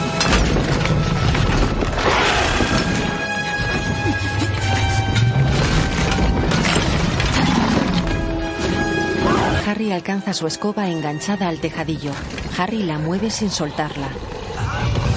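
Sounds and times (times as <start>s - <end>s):
Horntail dragon smashing a tower window and roof, film sound effect: 0.1s - 8.9s
speech: 9.9s - 15.0s.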